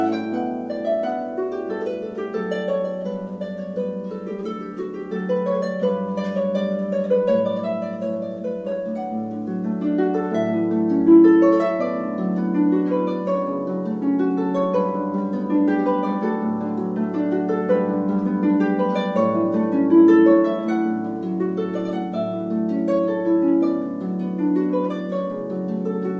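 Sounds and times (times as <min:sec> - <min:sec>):
harpist playing at a wedding: 0:00.0 - 0:26.1.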